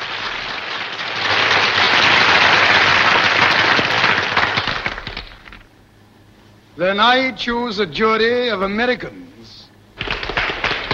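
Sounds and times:
uniformed women in an audience applauding: 0:00.0 - 0:05.4, 0:10.0 - 0:10.9
speech: 0:06.8 - 0:09.2.

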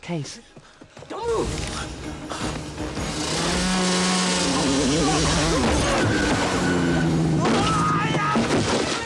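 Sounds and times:
speech: 0:00.0 - 0:02.7
snowmobile engine revving: 0:02.8 - 0:07.9.

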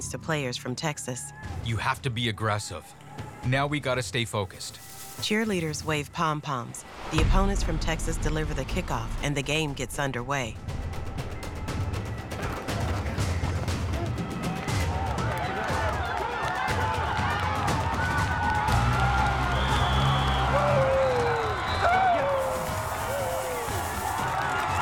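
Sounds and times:
speech: 0:00.0 - 0:10.8
large crowd cheering from stadium bleachers: 0:10.9 - 0:24.8.

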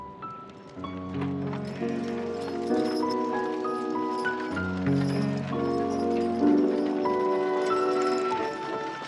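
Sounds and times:
horse hooves clip-clopping pulling a wagon out of a yard: 0:00.3 - 0:09.0.

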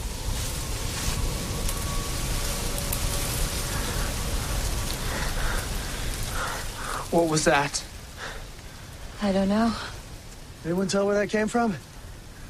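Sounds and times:
corn stalks rustling in the wind: 0:00.0 - 0:12.4
speech: 0:07.1 - 0:07.9, 0:09.2 - 0:10.0, 0:10.6 - 0:11.9.

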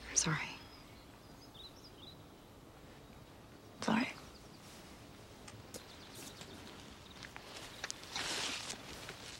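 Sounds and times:
speech: 0:00.2 - 0:00.5
footsteps of people walking: 0:04.6 - 0:09.3
rustling: 0:04.6 - 0:09.3.

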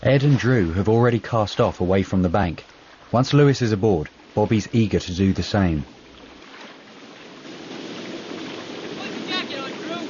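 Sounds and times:
water splashing around a paddled boat on a creek: 0:00.0 - 0:10.0
speech: 0:00.1 - 0:06.0.

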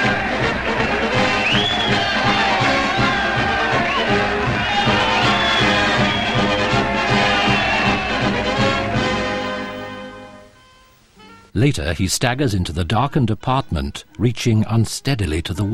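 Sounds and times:
supporters applauding: 0:00.0 - 0:09.4
speech: 0:11.6 - 0:15.7.

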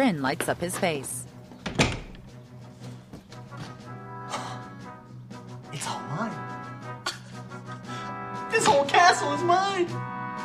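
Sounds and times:
speech: 0:00.0 - 0:01.2, 0:08.6 - 0:10.1
door closing: 0:01.6 - 0:02.4.

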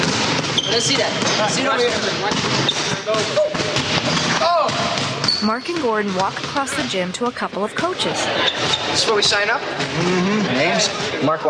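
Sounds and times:
basketball bouncing and thumping on a gym floor at practice: 0:00.0 - 0:07.8
speech: 0:00.7 - 0:03.8, 0:04.4 - 0:11.4.

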